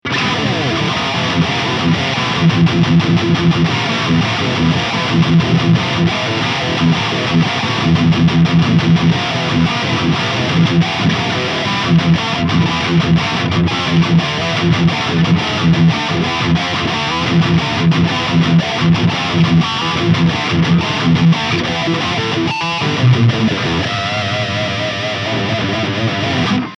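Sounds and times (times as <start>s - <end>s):
lead guitar through Engl E670FE amplifier: 0.0s - 26.7s.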